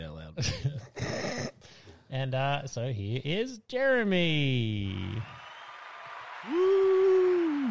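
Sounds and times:
speech: 0:00.4 - 0:00.7, 0:02.1 - 0:05.4
crowd applause sound effect: 0:05.0 - 0:07.6
loud sustained whooping cheer: 0:05.1 - 0:07.6.

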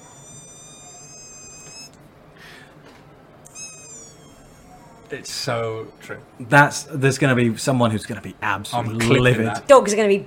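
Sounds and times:
person imitating mosquito buzzing past: 0:00.0 - 0:01.9, 0:03.5 - 0:05.2
speech: 0:05.1 - 0:10.2.

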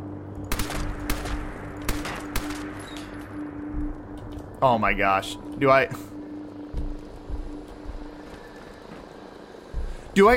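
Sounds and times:
low hum: 0:00.0 - 0:10.3
gunshots in a Bethesda video game battle: 0:00.5 - 0:02.8
speech: 0:04.6 - 0:06.1, 0:10.2 - 0:10.3.

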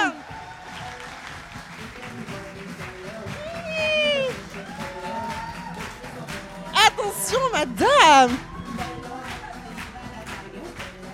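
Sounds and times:
audience applause: 0:00.0 - 0:11.1
audience whistles and cheering: 0:03.4 - 0:06.0, 0:08.2 - 0:09.7
speech: 0:07.3 - 0:08.5.

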